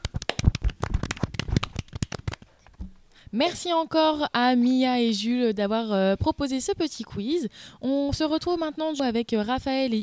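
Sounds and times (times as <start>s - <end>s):
small group clapping: 0.0s - 2.5s
speech: 3.3s - 10.0s.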